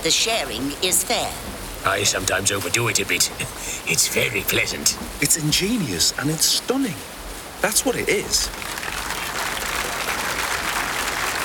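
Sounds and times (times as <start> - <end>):
speech: 0.0 - 8.8
crowd applause: 8.4 - 11.4.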